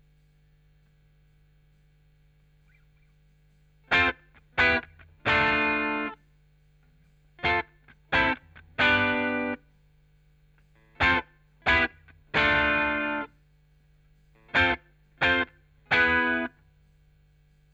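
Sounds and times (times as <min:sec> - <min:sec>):
chorus effect guitar: 0:02.6 - 0:13.5, 0:14.1 - 0:17.0.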